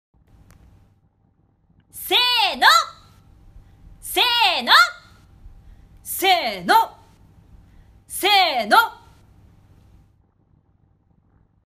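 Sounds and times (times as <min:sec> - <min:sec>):
voice: 0:02.0 - 0:03.1, 0:04.0 - 0:05.2, 0:06.0 - 0:07.1, 0:08.1 - 0:09.2.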